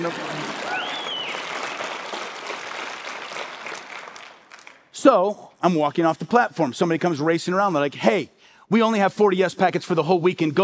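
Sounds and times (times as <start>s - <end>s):
speech: 0.0s - 0.4s, 5.0s - 10.6s
audience applause: 0.0s - 4.9s
person whooping: 0.6s - 1.4s.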